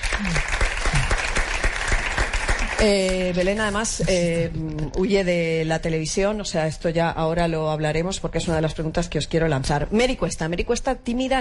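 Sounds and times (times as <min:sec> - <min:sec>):
audience applause: 0:00.0 - 0:03.6
speech: 0:02.8 - 0:11.3.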